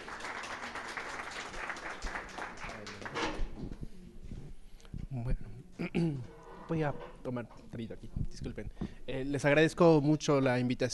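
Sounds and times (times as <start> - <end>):
audience applause: 0.0 - 3.2
speech: 5.2 - 10.9.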